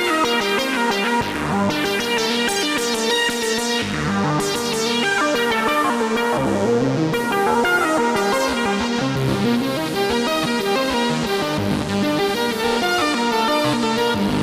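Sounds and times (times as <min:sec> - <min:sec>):
synthesizer: 0:00.0 - 0:14.4.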